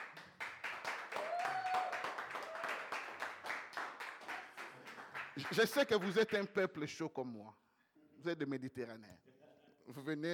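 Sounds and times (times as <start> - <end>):
congregation clapping at a church service: 0.0 - 6.6
speech: 5.4 - 7.6, 8.2 - 10.3.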